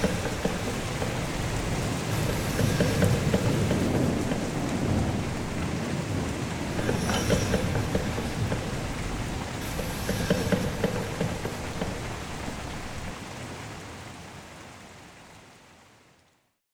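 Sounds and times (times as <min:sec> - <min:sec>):
crane machinery: 0:00.0 - 0:13.1
rain: 0:00.0 - 0:16.6.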